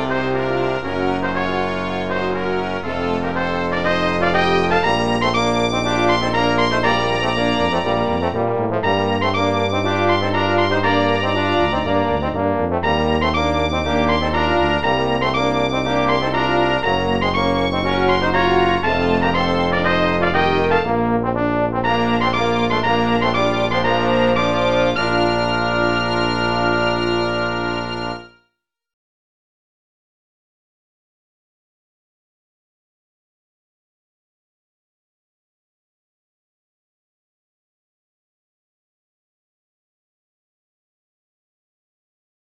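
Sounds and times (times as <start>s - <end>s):
brass quintet ending: 0.0s - 28.4s.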